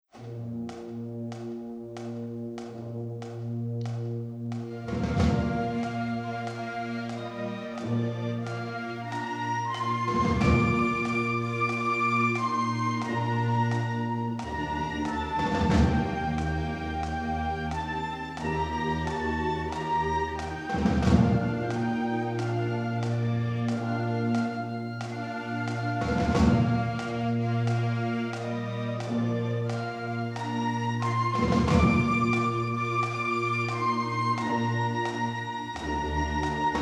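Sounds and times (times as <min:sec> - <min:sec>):
marching band: 0:00.1 - 0:36.7.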